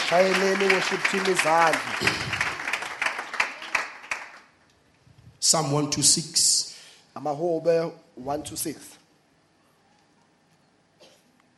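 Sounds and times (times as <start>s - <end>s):
audience applause: 0.0s - 4.5s
speech: 0.1s - 2.5s, 5.5s - 9.0s.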